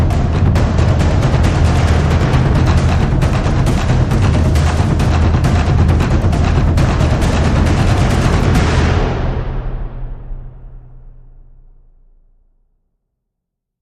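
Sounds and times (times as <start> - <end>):
drums: 0.0 - 11.0.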